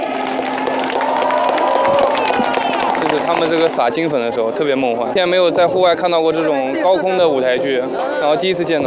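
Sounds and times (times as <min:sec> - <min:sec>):
applause of an audience at an outdoor aerial stage show: 0:00.1 - 0:04.5
audience exclaiming at an outdoor aerial stage show: 0:00.5 - 0:04.1
speech: 0:03.3 - 0:08.8.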